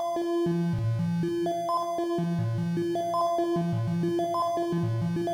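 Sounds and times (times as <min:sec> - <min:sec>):
complex synth modulations: 0:00.2 - 0:05.3.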